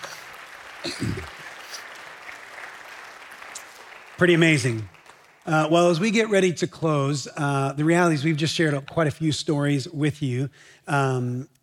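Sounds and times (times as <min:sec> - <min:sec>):
audience round of applause: 0:00.0 - 0:05.7
speech: 0:00.8 - 0:01.4, 0:04.2 - 0:04.9, 0:05.5 - 0:11.5.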